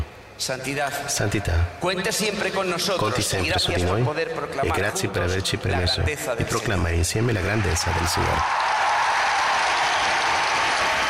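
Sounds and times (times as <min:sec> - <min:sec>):
speech: 0:00.4 - 0:08.7
large gathering applauding the Cardinal Archbishop of Madrid: 0:07.8 - 0:11.0.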